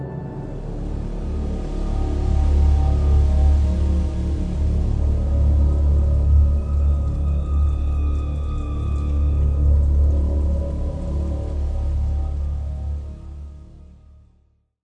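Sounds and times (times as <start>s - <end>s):
water loop: 0.5s - 14.0s.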